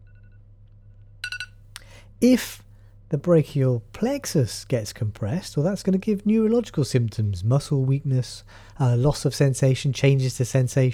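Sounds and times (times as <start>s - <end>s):
low steady hum: 0.0s - 10.9s
timer beeping: 1.2s - 1.5s
speech: 2.2s - 10.9s.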